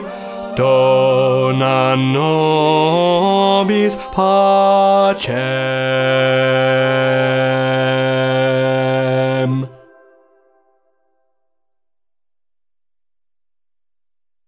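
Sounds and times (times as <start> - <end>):
bass voice singing: 0.0 - 9.9.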